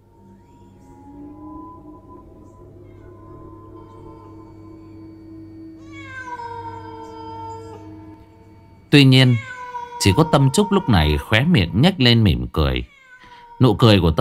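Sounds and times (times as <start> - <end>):
cat meowing: 0.1 - 4.6, 5.8 - 8.1, 9.0 - 11.8, 12.4 - 14.1
speech: 8.9 - 12.9, 13.6 - 14.1.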